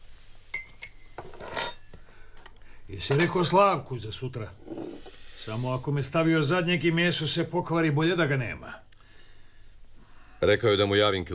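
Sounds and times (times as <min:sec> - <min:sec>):
cutlery clinking against plates during a meal: 0:00.6 - 0:02.0
speech: 0:02.9 - 0:04.8, 0:05.5 - 0:08.8, 0:10.4 - 0:11.3.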